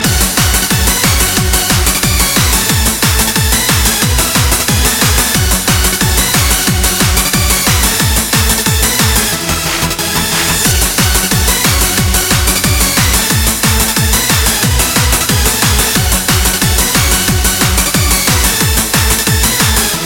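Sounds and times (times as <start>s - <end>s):
hyper techno music: 0.0s - 20.0s.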